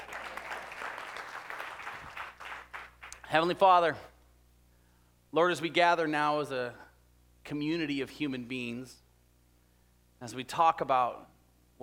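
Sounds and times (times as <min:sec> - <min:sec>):
audience clapping: 0:00.0 - 0:03.3
speech: 0:03.3 - 0:04.1, 0:05.3 - 0:06.8, 0:07.4 - 0:09.0, 0:10.2 - 0:11.8.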